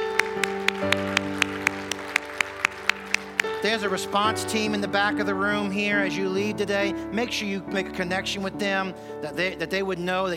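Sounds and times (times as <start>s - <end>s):
applause in a church service: 0.0s - 4.3s
sustained keyboard chords: 0.0s - 10.3s
speech: 3.6s - 10.3s.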